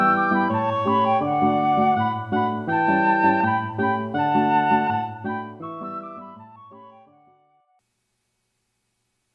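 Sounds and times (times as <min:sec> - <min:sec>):
musical trio: 0:00.0 - 0:07.0.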